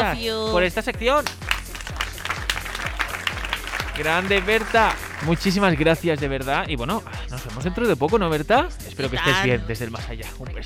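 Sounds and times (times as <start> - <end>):
speech: 0.1 - 1.4, 4.0 - 10.6
applause: 1.2 - 6.2
laughter: 1.7 - 5.9.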